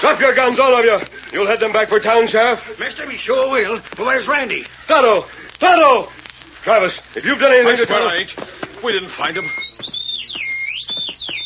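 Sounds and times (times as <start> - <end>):
speech: 0.1 - 10.0
whistle blown: 9.2 - 11.4.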